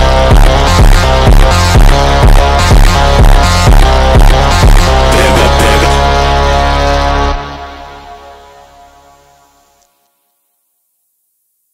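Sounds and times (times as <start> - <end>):
automotivo beat: 0.0 - 6.4.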